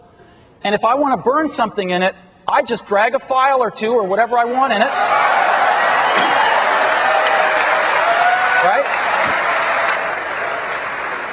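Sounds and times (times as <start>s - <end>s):
speech: 0.6s - 5.3s
audience applause: 4.9s - 11.3s.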